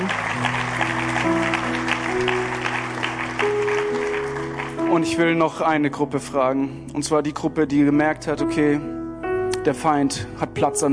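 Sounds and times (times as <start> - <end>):
audience applause: 0.0 - 5.2
speech: 5.0 - 9.0, 9.6 - 10.9.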